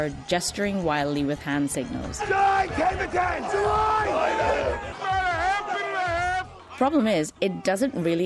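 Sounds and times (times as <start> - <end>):
speech: 0.0 - 5.1, 6.8 - 8.2
floor traders shouting in open outcry: 2.2 - 8.0.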